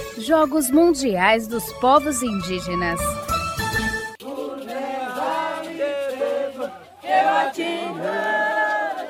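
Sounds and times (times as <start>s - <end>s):
speech: 0.2s - 3.3s
Xerente crowd cheering football final victory: 4.2s - 9.0s.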